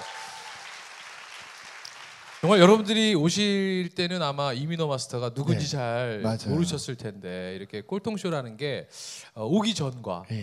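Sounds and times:
audience applause: 0:00.0 - 0:02.8
speech: 0:02.4 - 0:10.4.

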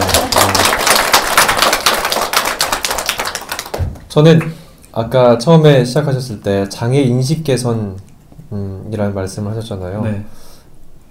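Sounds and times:
audience clapping: 0:00.0 - 0:04.6
speech: 0:04.2 - 0:10.4.

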